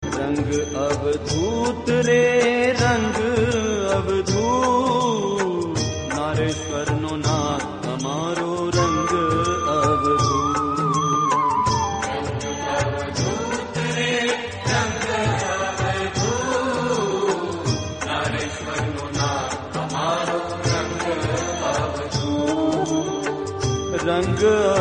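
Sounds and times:
Gujarati song: 0:00.1 - 0:24.7.

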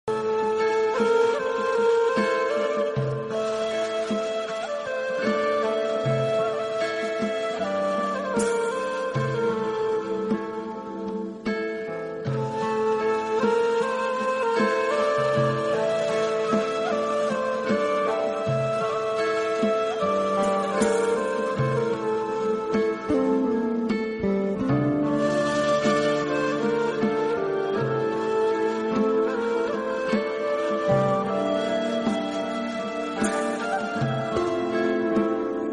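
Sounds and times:
instrumental music: 0:00.0 - 0:35.7.

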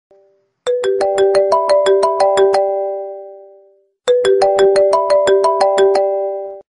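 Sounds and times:
iPhone Apple sound instrumental: 0:00.1 - 0:06.7.

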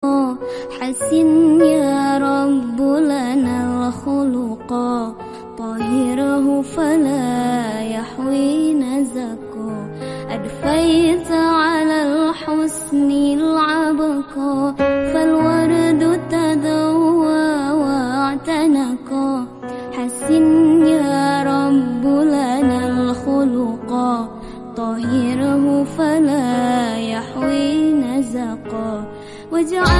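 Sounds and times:
sad melodious Islamic sholawat singing: 0:00.0 - 0:29.0, 0:29.6 - 0:29.9.

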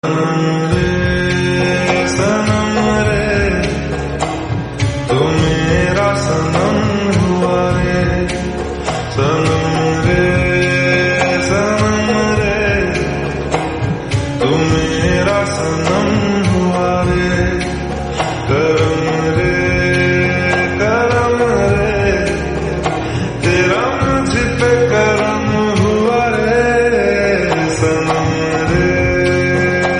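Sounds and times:
lofi remix of a Hindi song: 0:00.0 - 0:29.9.

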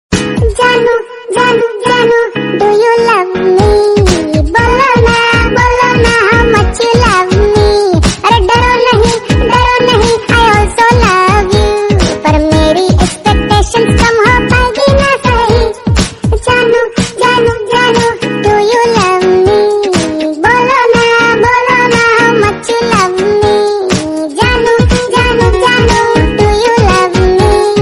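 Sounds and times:
funny Hindi song: 0:00.1 - 0:27.7.

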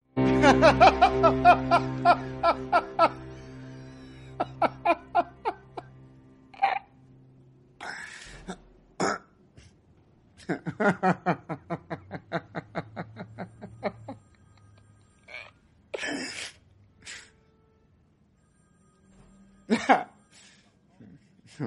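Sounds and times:
the Joker laughing: 0:00.2 - 0:06.0, 0:10.4 - 0:14.2, 0:19.7 - 0:20.1.

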